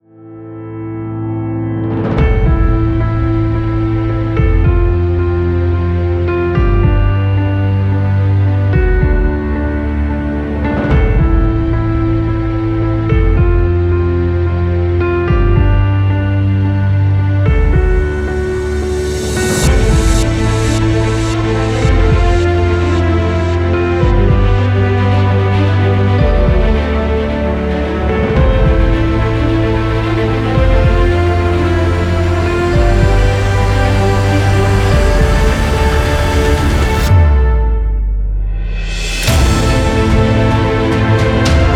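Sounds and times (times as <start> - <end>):
epic piano music: 0.0 - 41.7.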